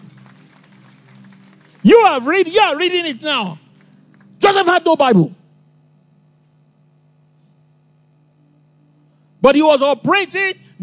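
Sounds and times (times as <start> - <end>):
audience clapping: 0.0 - 4.8
speech: 1.8 - 3.6, 4.4 - 5.4, 9.4 - 10.8.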